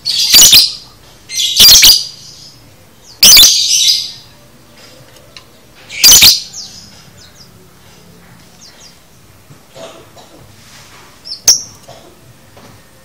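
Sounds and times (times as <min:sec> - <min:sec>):
lovebird shrill squawks and chatter: 0:00.1 - 0:02.2, 0:03.2 - 0:04.1, 0:05.9 - 0:06.5.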